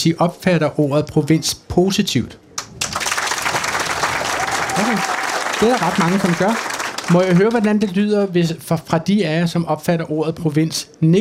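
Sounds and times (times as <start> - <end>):
speech: 0.0 - 2.4, 4.8 - 11.1
audience applause: 2.8 - 7.8.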